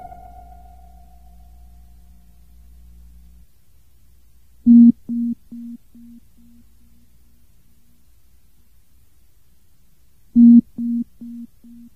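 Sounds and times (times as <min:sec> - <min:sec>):
beep: 0:04.7 - 0:06.1, 0:10.4 - 0:11.8.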